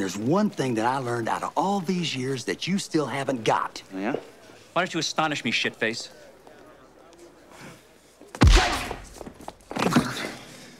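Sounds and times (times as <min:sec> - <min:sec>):
speech: 0:00.0 - 0:06.2
punch thud: 0:08.4 - 0:09.4.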